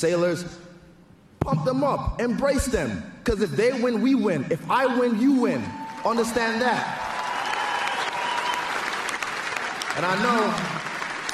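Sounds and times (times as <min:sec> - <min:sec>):
speech: 0:00.0 - 0:00.7, 0:01.4 - 0:07.0, 0:10.0 - 0:10.8
audience applause: 0:05.7 - 0:11.3.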